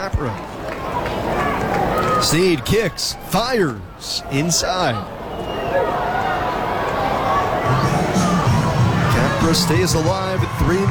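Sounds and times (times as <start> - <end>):
speech: 0.0 - 0.5, 2.2 - 5.2, 9.5 - 10.8
stadium crowd making noise: 0.0 - 10.8.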